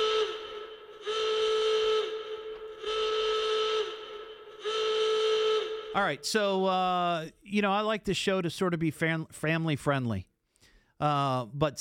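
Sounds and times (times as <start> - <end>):
warning sound effect whistle: 0.0 - 6.5
speech: 6.0 - 10.3, 11.0 - 11.7.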